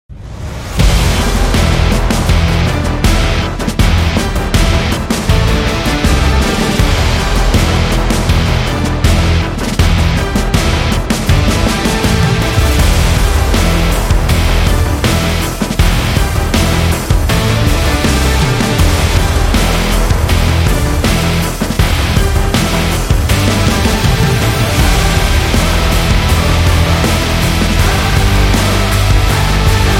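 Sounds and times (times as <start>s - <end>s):
epic energetic rock music: 0.6s - 29.9s.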